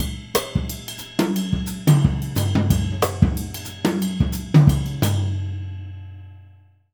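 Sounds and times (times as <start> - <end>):
jazz music: 0.0 - 5.4.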